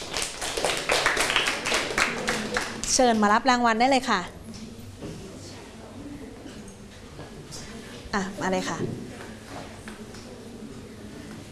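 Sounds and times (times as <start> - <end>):
classmates clapping: 0.0 - 3.3
speech: 2.9 - 4.4, 8.2 - 9.0.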